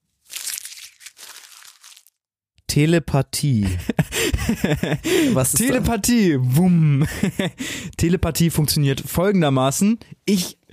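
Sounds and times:
paper joker slips rustling as drawn from a glass jar: 0.2s - 2.2s
speech: 2.8s - 10.6s
laughter: 3.6s - 6.0s, 7.0s - 7.6s.

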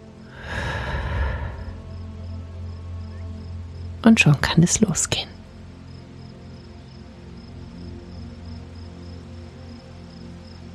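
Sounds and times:
faint steady tonal background: 0.0s - 10.7s
deep breath in and out: 0.2s - 1.9s
speech: 4.0s - 5.4s.

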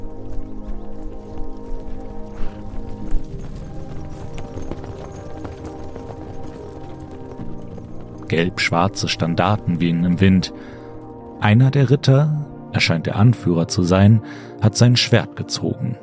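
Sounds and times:
hooves of several horses trotting: 0.0s - 11.5s
speech: 8.4s - 10.8s, 11.4s - 16.0s.

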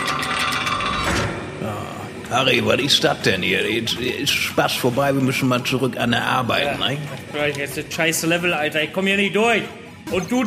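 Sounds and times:
door being opened: 0.0s - 1.6s
speech: 2.3s - 10.4s.

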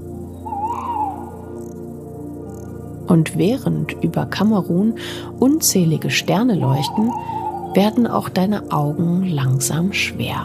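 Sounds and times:
owl hooting at night: 0.3s - 2.8s, 6.0s - 8.8s
speech: 3.1s - 10.4s.

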